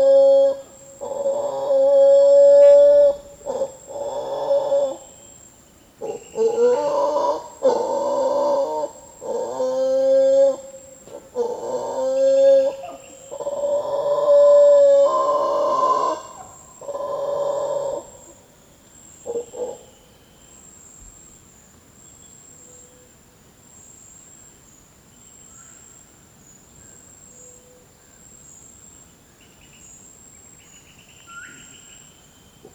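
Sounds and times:
mantled howler Alouatta palliata howling: 0.0s - 5.2s, 6.0s - 18.4s, 19.2s - 19.9s.

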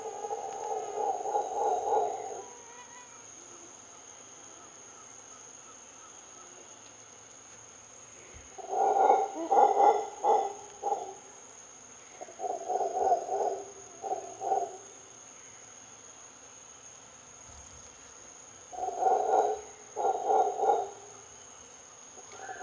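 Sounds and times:
mantled howler Alouatta palliata howling: 0.0s - 2.9s, 8.6s - 11.3s, 12.2s - 14.9s, 18.8s - 21.3s, 22.2s - 22.6s.

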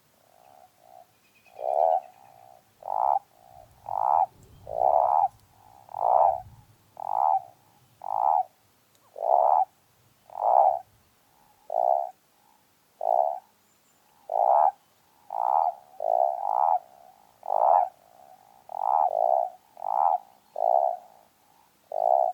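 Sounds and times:
common toad Bufo bufo: 0.2s - 13.5s, 14.1s - 22.3s.

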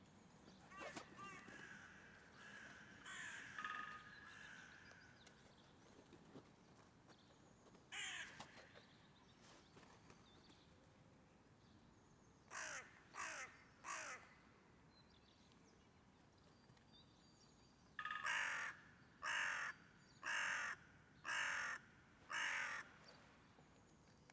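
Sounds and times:
hooded crow Corvus cornix cornix calling: 0.7s - 4.8s, 12.5s - 14.2s, 18.0s - 23.0s.

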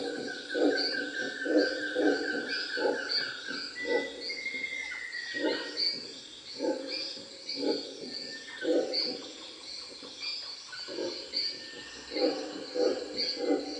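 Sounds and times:
Bolivian red howler monkey Alouatta sara howling: 0.0s - 6.0s, 7.6s - 9.4s, 10.9s - 13.7s.

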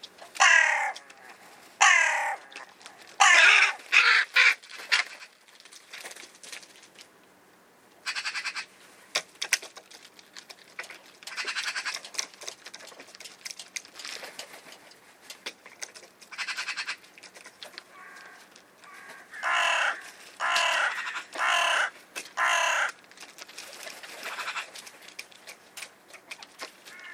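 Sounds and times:
hooded crow Corvus cornix cornix calling: 0.3s - 5.3s, 16.3s - 17.0s, 17.8s - 23.0s, 26.8s - 27.1s.

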